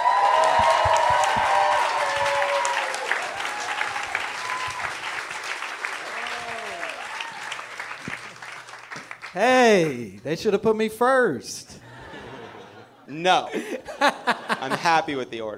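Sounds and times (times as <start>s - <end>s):
comedy show audience whoops and shouts: 0.0s - 5.0s, 6.1s - 7.6s
comedy show audience clapping: 0.0s - 10.2s
speech: 9.4s - 11.8s, 13.1s - 15.5s
laughter: 11.8s - 15.2s.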